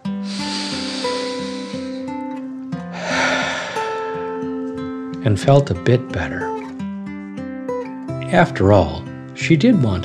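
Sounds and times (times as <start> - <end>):
soft steady music: 0.0 - 10.0
deep breath in and out: 0.1 - 2.3, 2.9 - 4.4
speech: 5.2 - 6.5, 8.3 - 10.0.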